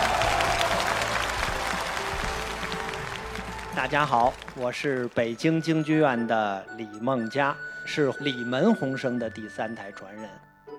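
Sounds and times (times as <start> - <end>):
audience applause welcoming two Peking opera performers at a live variety show: 0.0 - 5.4
speech: 3.8 - 10.5.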